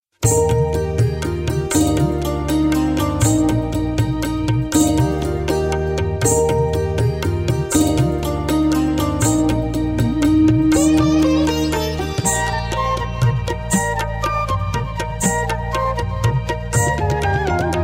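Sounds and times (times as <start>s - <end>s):
sitar: 0.1s - 17.8s
tabla: 0.1s - 17.8s
flute: 9.4s - 17.8s.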